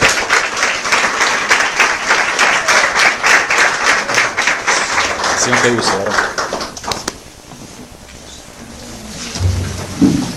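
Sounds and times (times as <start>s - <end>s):
audience applause: 0.0s - 7.1s
speech: 5.4s - 6.4s.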